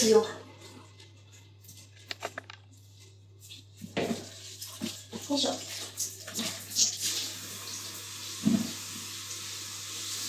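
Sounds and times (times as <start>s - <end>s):
speech: 0.0s - 0.4s, 5.3s - 5.7s
water splashing in a bath while someone washes their body: 3.3s - 10.2s.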